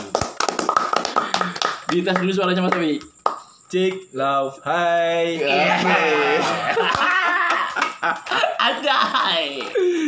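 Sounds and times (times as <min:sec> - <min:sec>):
hand clapping applause: 0:00.0 - 0:03.5, 0:06.7 - 0:08.4
speech: 0:01.9 - 0:03.1, 0:03.7 - 0:10.0
laughter: 0:05.4 - 0:10.0.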